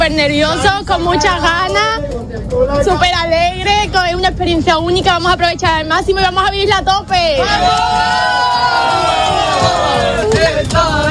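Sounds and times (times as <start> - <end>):
speech: 0.1 - 11.0
crowd of young people travelling to Madrid to meet the Pope shouting and cheering: 7.2 - 11.0.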